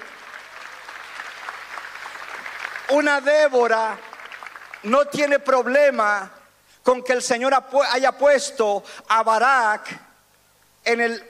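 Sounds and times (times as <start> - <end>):
audience applauding: 0.0 - 5.1
speech: 2.9 - 4.1, 4.8 - 10.0, 10.8 - 11.2.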